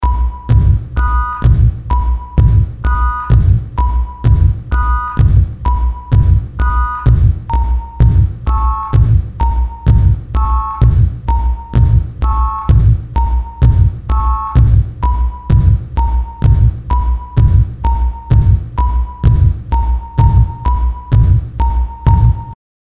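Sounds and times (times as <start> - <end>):
sine wave tone: 0.0 - 22.6.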